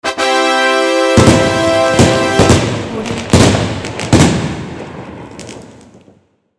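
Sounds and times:
jubilant fanfare: 0.0s - 3.4s
fireworks: 1.1s - 6.5s.

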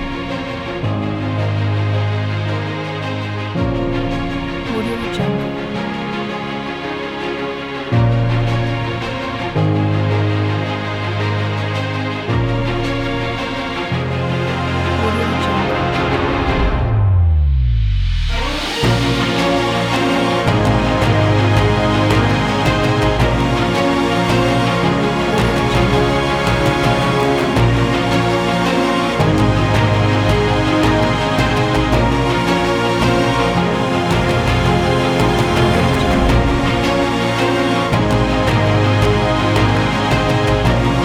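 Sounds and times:
epic background music: 0.0s - 41.0s.

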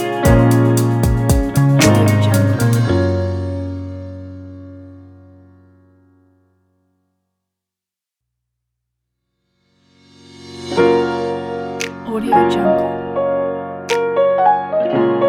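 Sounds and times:
modern emotional rnb guitar music: 0.0s - 5.3s, 10.7s - 15.2s.

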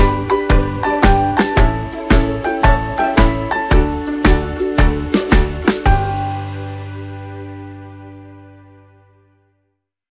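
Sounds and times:
cheerful drum kit: 0.0s - 6.6s.

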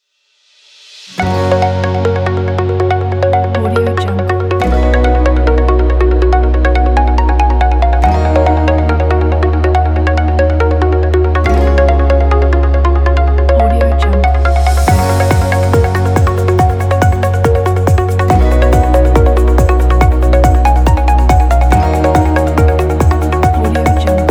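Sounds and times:
inspirational corporate music: 1.2s - 24.2s.

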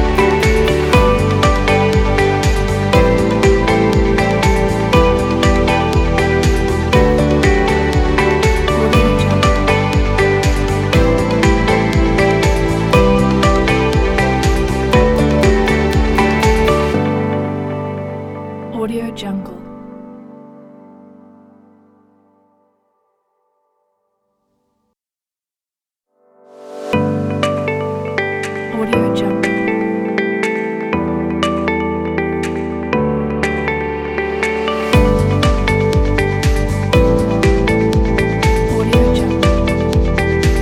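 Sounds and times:
inspiring upbeat music: 0.0s - 18.2s, 26.9s - 40.5s.

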